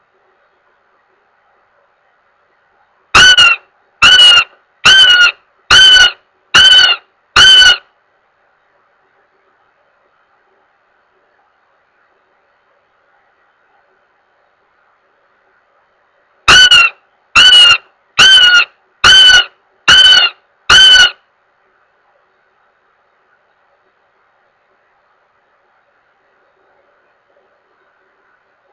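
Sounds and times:
goshawk giving harsh level wailing notes: 3.2 - 7.8, 16.5 - 21.2.

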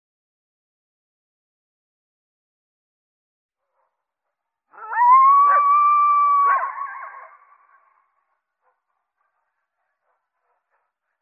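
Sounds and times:
coyote howling and yelping: 4.7 - 7.8.

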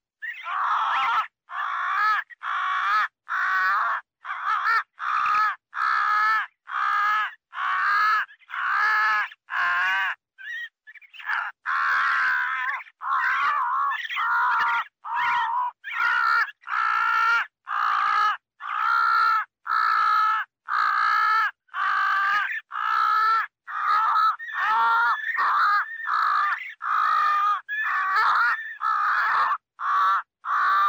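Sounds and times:
crow cawing: 0.3 - 10.1, 11.1 - 30.8.

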